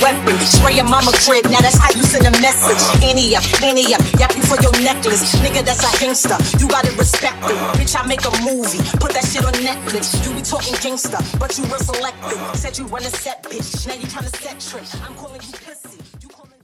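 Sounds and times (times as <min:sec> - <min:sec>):
record scratching: 0:00.0 - 0:09.7
club mashup music: 0:00.0 - 0:16.4.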